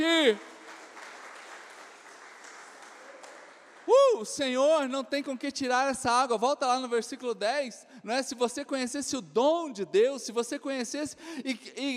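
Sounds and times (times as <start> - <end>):
speech: 0.0 - 0.5, 4.2 - 11.9
large crowd applauding: 0.0 - 4.3.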